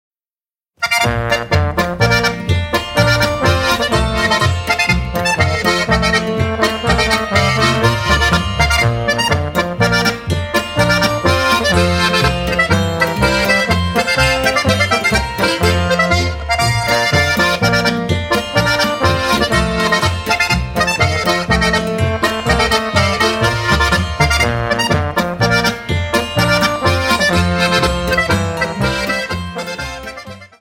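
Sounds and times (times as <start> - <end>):
march music: 0.8 - 30.5.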